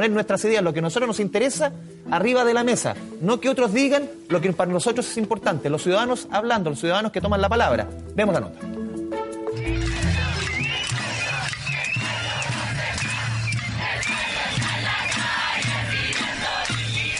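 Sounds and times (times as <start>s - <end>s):
speech: 0.0s - 8.8s
protest crowd shouting and chanting: 9.6s - 17.1s
drum-like thumping: 9.8s - 17.1s.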